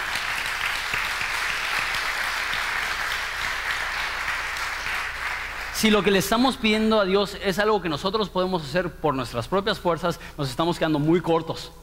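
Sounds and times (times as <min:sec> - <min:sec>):
audience applause: 0:00.0 - 0:05.9
speech: 0:05.8 - 0:11.8.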